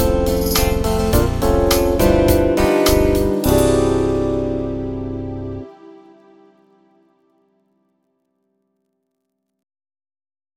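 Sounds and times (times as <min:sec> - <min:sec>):
eight-beat MIDI rhythm: 0:00.0 - 0:05.7.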